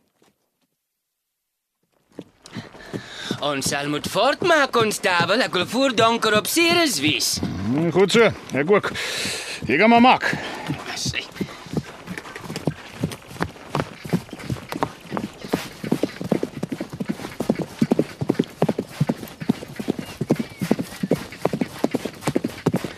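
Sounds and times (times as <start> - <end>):
horses trotting along a wagon road's wheel track: 1.9 - 22.9
speech: 3.4 - 10.6.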